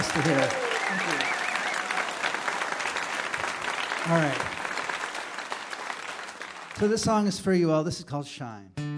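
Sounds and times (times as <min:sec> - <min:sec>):
round of applause: 0:00.0 - 0:07.1
speech: 0:00.2 - 0:01.0, 0:04.0 - 0:04.5, 0:06.8 - 0:08.8.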